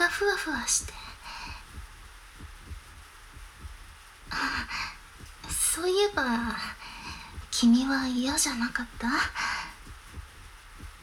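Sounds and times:
breathy hiss: 0.0s - 11.0s
pounding heartbeat after a first kiss: 0.0s - 11.0s
speech: 0.2s - 1.1s, 5.8s - 6.8s, 7.6s - 9.5s.

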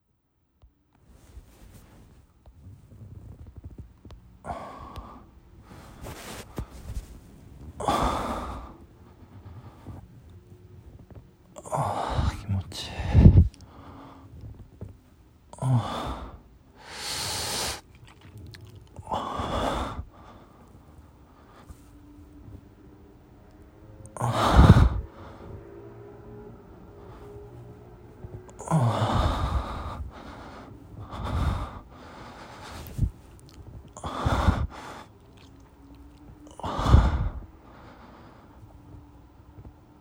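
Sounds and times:
person breathing and moaning while masturbating: 4.4s - 10.0s, 10.8s - 14.6s, 15.6s - 22.5s, 24.1s - 25.8s, 26.8s - 38.6s.

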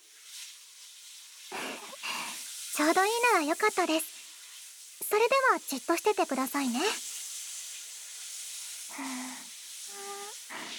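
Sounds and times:
shower water spraying: 0.0s - 10.7s
speech: 2.8s - 4.2s, 5.1s - 7.1s, 9.0s - 9.3s
person vocalizing short pitched syllables: 9.9s - 10.4s.

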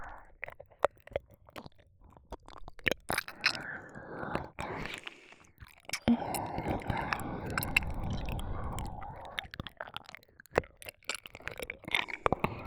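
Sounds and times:
ear licking sounds: 1.5s - 12.6s
oral sex sounds: 3.2s - 9.5s.

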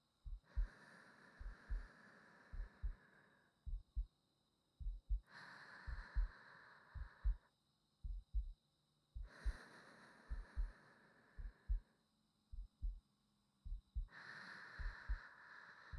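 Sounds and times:
new wife's heartbeat: 0.0s - 0.8s, 1.4s - 3.0s, 3.6s - 4.1s, 4.8s - 8.6s, 9.2s - 9.7s, 10.3s - 10.8s, 11.4s - 11.9s, 12.5s - 13.0s, 13.6s - 14.2s, 14.8s - 15.3s
sleeping breathing: 0.3s - 3.5s, 5.2s - 7.4s, 9.2s - 12.0s, 14.0s - 15.9s.

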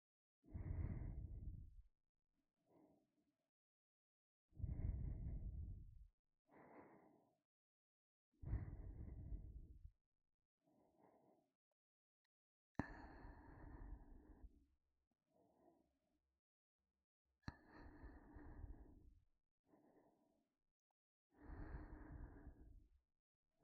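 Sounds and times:
ASMR breathing in the right ear: 0.5s - 1.8s, 4.6s - 7.4s, 8.4s - 9.9s, 10.7s - 11.5s, 12.8s - 14.6s, 15.3s - 15.9s, 17.5s - 20.4s, 21.3s - 22.9s.

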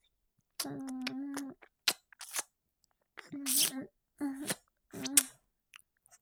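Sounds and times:
fellatio ASMR sounds: 0.6s - 2.4s, 3.4s - 5.3s.

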